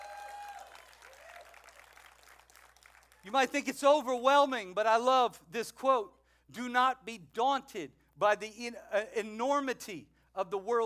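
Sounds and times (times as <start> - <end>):
audience clapping: 0.0 - 3.6
speech: 3.2 - 10.8.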